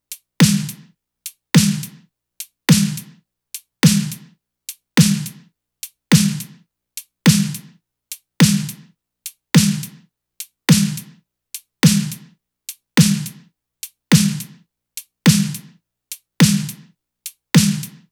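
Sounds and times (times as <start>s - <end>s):
drum loop: 0.4s - 0.9s, 1.6s - 2.0s, 2.7s - 3.1s, 3.8s - 4.2s, 5.0s - 5.4s, 6.1s - 6.5s, 7.3s - 7.7s, 8.4s - 8.8s, 9.6s - 10.0s, 10.7s - 11.1s, 11.8s - 12.3s, 13.0s - 13.4s, 14.1s - 14.6s, 15.3s - 15.7s, 16.4s - 16.9s, 17.6s - 18.0s.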